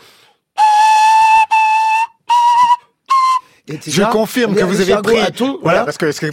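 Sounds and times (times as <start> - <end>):
shrill whistling by blowing into a snail shell: 0.6 - 3.4
speech: 3.7 - 6.3.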